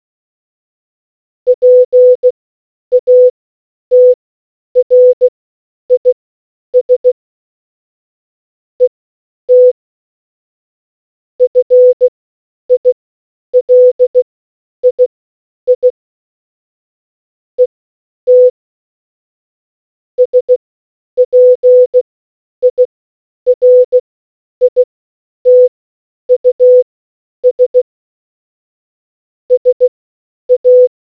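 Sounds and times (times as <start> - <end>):
morse code beeps: 1.5 - 2.3, 2.9 - 3.3, 3.9 - 4.2, 4.8 - 5.3, 6.0 - 6.2, 6.8 - 7.2, 9.5 - 9.8, 11.4 - 12.1, 13.6 - 15.0, 15.7 - 16.0, 18.3 - 18.6, 20.2 - 20.6, 21.2 - 22.0, 22.6 - 22.9, 23.5 - 24.0, 24.6 - 24.9, 25.5 - 25.7, 26.3 - 27.8, 29.5 - 29.9, 30.5 - 30.9.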